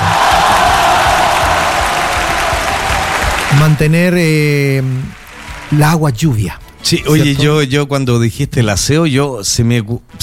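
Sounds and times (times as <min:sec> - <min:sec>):
applause and cheering sound effect: 0:00.0 - 0:06.3
speech: 0:03.6 - 0:10.2.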